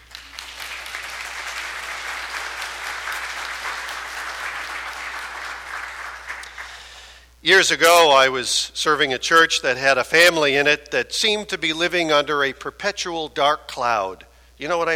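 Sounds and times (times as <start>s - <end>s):
audience applause: 0.0s - 7.0s
speech: 7.4s - 14.9s.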